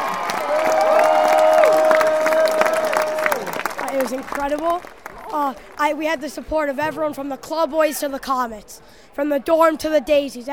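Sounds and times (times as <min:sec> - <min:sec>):
audience applause: 0:00.0 - 0:06.4
speech: 0:04.1 - 0:10.5.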